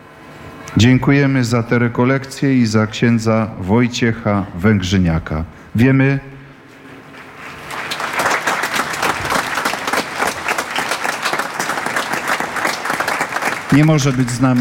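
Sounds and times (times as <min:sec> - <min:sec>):
speech: 0:00.7 - 0:06.4, 0:13.7 - 0:14.6
audience applause: 0:07.3 - 0:14.6.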